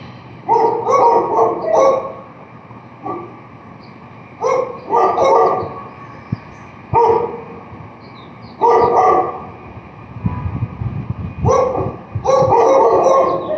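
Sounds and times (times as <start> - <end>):
barking: 0.5 - 2.3, 4.4 - 5.8, 7.0 - 7.6, 8.6 - 9.5, 11.5 - 13.5.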